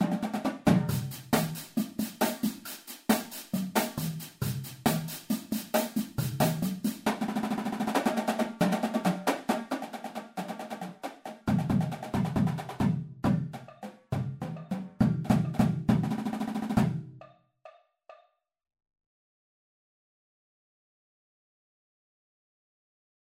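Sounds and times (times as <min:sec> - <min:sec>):
drumline playing: 0:00.0 - 0:17.2.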